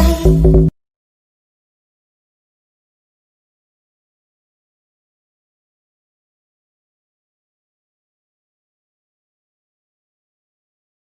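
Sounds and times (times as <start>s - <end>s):
sped up funk song: 0.0s - 0.7s.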